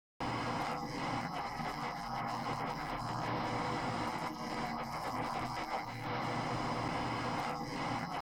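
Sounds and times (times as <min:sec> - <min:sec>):
noise: 0:00.2 - 0:08.3.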